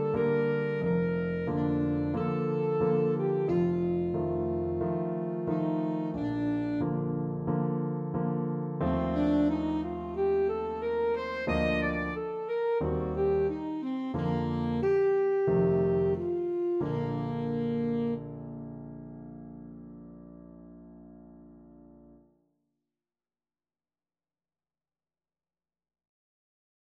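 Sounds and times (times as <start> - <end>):
alto saxophone: 0.0 - 7.5, 8.8 - 18.8.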